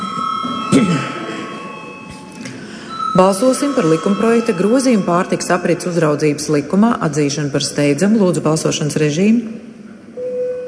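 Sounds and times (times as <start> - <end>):
parliament chamber voting bell ringing: 0.0 - 6.8
speech: 3.2 - 9.7.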